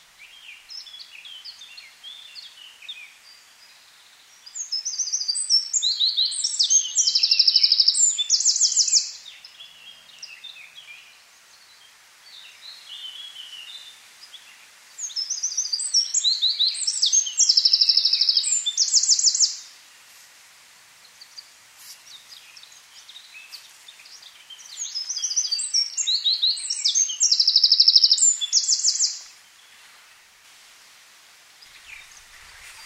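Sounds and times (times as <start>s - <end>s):
faint chirps of other birds: 0.3s - 19.7s, 21.0s - 30.3s
Eurasian wren song: 4.4s - 19.8s, 21.0s - 29.9s, 31.6s - 32.8s.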